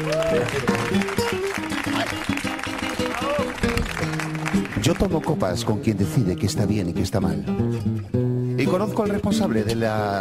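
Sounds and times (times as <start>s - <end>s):
speech: 0.0s - 1.2s, 4.8s - 10.1s
voices cheering: 0.0s - 3.8s
audience applause: 0.0s - 5.6s
music: 0.0s - 10.1s.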